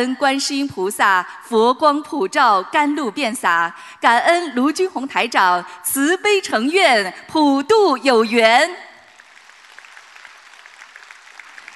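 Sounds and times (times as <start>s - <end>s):
speech: 0.0s - 8.9s
audience applause: 9.1s - 11.7s.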